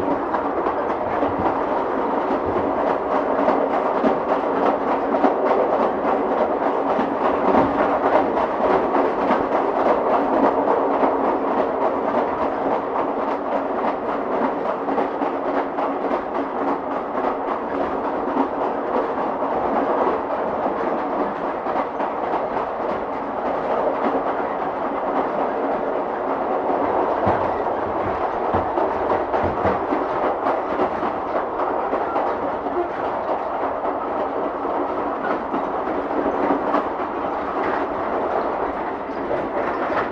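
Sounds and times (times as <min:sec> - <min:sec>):
moving train: 0:00.0 - 0:40.0.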